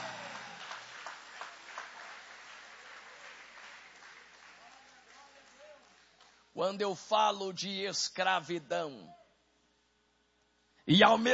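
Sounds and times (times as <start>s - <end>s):
audience applauding: 0.0s - 6.1s
speech: 6.6s - 9.2s, 10.9s - 11.3s.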